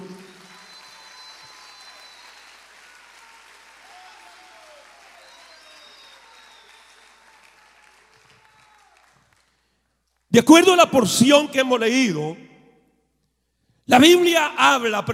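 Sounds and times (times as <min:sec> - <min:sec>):
audience applause: 0:00.0 - 0:09.7
speech: 0:10.3 - 0:12.5, 0:13.9 - 0:15.1.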